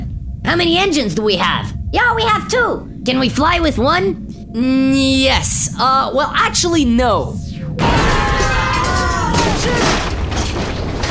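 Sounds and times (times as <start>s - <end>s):
rumbling debris roar: 0.0s - 11.0s
speech: 0.5s - 8.0s, 9.6s - 10.1s
battleship crash and explosion: 7.4s - 11.0s.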